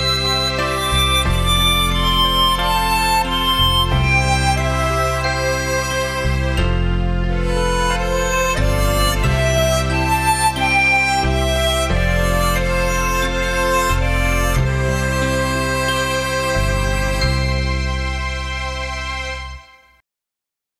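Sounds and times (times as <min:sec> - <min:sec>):
harmonica melody: 0:00.0 - 0:18.8.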